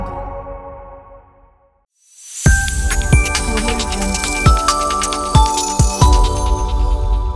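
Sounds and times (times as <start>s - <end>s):
digital media logo jingles: 2.5s - 7.2s.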